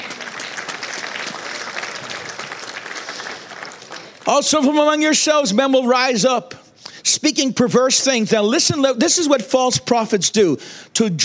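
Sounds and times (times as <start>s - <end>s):
audience applause: 0.0s - 4.4s
speech: 4.3s - 11.2s.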